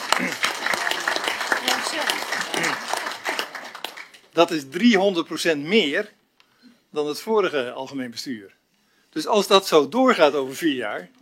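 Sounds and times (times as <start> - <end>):
crowd applause: 0.0 - 4.3
speech: 4.4 - 6.2, 6.9 - 8.6, 9.2 - 11.2.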